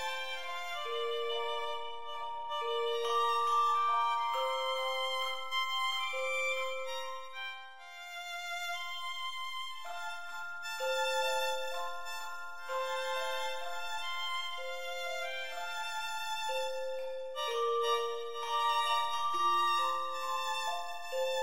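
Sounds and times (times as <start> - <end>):
Christmas tune on violin: 0.0 - 21.4.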